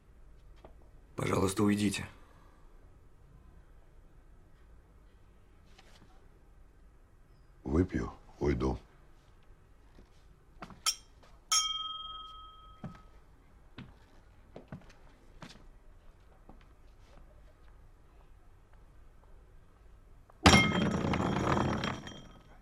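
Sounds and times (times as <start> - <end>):
speech: 1.2 - 2.2, 7.8 - 8.9
glass striking a hard floor without breaking: 20.4 - 22.5.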